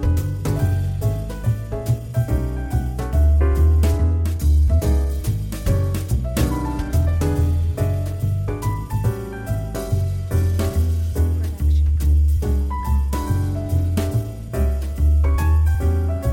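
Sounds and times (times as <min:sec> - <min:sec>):
swing trio playing in a bar: 0:00.0 - 0:16.3.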